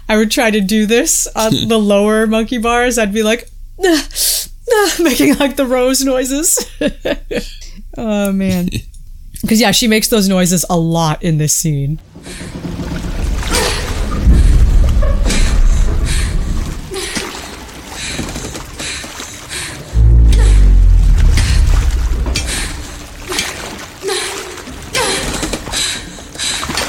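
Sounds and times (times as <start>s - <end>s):
speech: 0.1s - 13.0s
ship hull groaning and creaking: 12.0s - 17.8s, 19.9s - 25.0s
rushing water: 12.5s - 26.8s.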